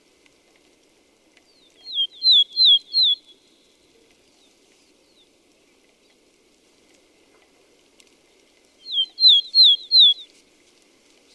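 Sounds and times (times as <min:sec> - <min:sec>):
red-flanked bluetail Tarsiger cyanurus: 0:01.7 - 0:03.7, 0:08.8 - 0:10.3.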